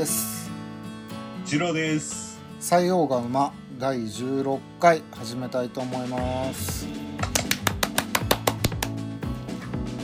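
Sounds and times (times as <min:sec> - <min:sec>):
speech: 0:00.0 - 0:00.3, 0:01.5 - 0:07.2
hand clapping: 0:06.2 - 0:09.7.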